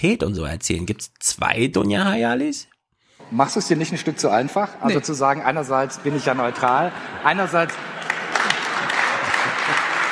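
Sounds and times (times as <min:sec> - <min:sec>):
speech: 0:00.0 - 0:02.7, 0:03.3 - 0:08.0
laughter: 0:03.2 - 0:10.1
live audience applauding: 0:06.0 - 0:10.1.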